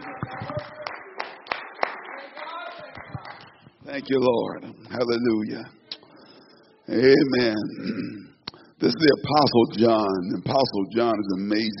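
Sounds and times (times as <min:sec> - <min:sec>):
audience clapping hands: 0:00.0 - 0:03.7
speech: 0:03.9 - 0:05.8, 0:06.9 - 0:11.7.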